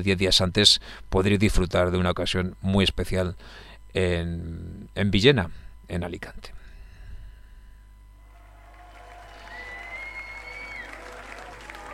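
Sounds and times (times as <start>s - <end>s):
speech: 0.0s - 6.6s
live concert audience clapping and cheering at a German band's show: 8.3s - 11.9s
whistle: 9.3s - 11.2s.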